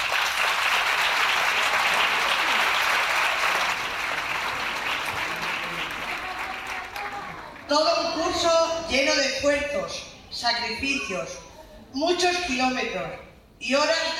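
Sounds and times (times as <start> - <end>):
audience applause: 0.0 - 7.7
speech: 7.7 - 14.1.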